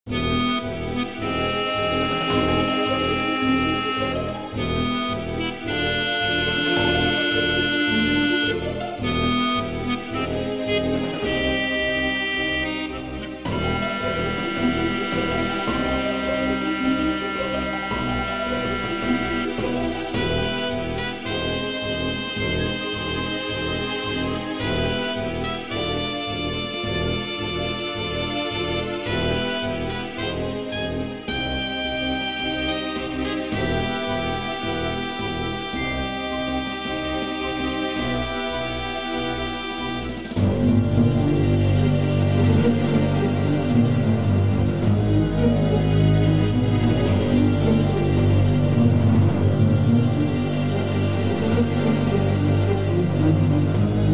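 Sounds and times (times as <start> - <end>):
sneaking music: 0.1 - 54.1.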